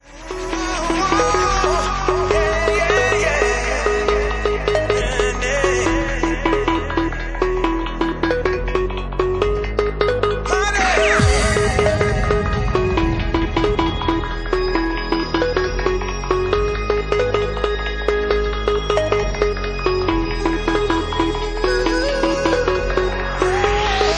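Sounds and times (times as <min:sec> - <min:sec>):
remix music: 0:00.0 - 0:24.1.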